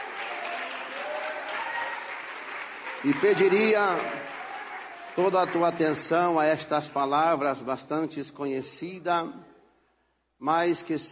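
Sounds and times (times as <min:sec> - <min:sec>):
audience applause: 0:00.0 - 0:06.5
speech: 0:03.0 - 0:04.3, 0:05.2 - 0:09.5, 0:10.4 - 0:11.1.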